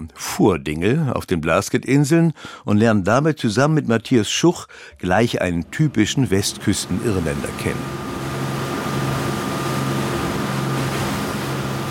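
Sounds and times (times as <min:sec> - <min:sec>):
speech: 0:00.0 - 0:08.2
small charter boat ploughing through grey Atlantic waves: 0:05.3 - 0:11.8.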